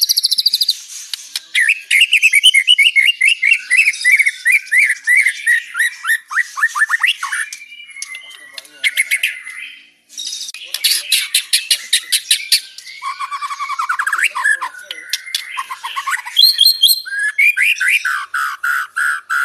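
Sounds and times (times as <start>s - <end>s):
murai bird singing from Lampung: 0.0s - 19.4s.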